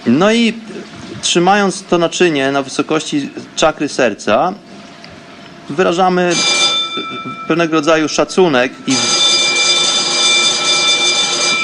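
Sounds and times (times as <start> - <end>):
speech: 0.0 - 4.7, 5.7 - 9.2
phone ringing: 6.3 - 7.7, 8.7 - 11.6.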